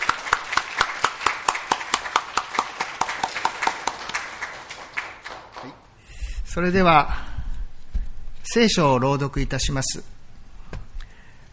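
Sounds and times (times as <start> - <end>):
audience clapping to welcome speaker: 0.0 - 6.0
speech: 6.6 - 7.2, 8.5 - 10.1.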